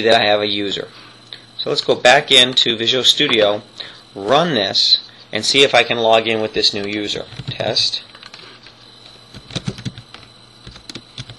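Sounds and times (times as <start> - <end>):
speech: 0.0 - 8.1
password typed on a computer keyboard: 6.8 - 8.4, 9.3 - 11.3.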